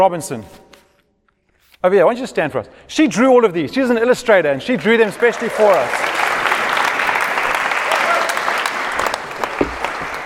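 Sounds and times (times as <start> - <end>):
speech: 0.0 - 0.6, 1.8 - 6.3
audience applause: 4.8 - 10.2.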